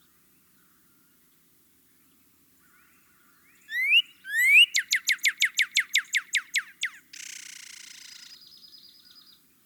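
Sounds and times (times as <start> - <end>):
Northern cardinal singing rapid sharp whistled notes: 3.7 - 7.0.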